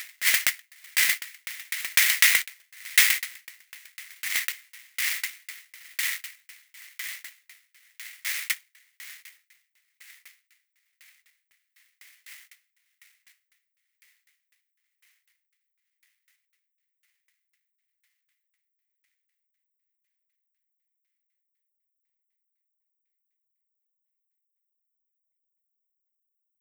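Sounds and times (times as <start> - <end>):
mirror music: 0.0 - 19.2.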